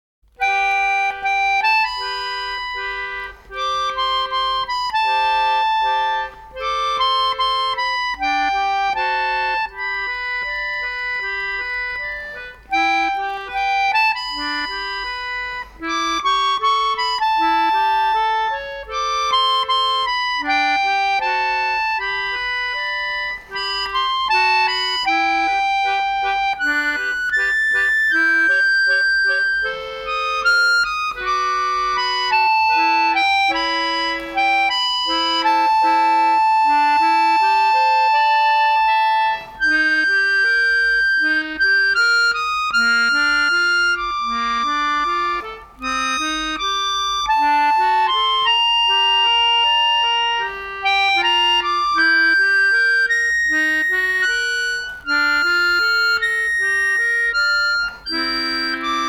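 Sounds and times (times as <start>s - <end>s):
accordion: 0.3s - 59.0s.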